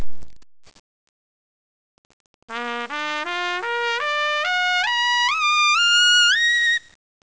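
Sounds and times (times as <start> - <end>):
trumpet: 2.5 - 6.8.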